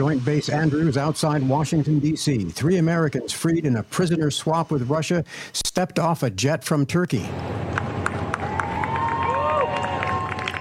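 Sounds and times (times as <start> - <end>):
speech: 0.0 - 7.9
applause and cheers from welcoming crowd: 7.7 - 10.5.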